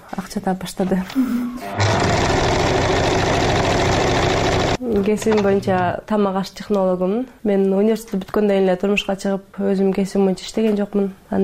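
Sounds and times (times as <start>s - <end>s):
speech: 0.4s - 3.6s, 4.8s - 11.4s
small home sewing machine running: 1.7s - 5.9s.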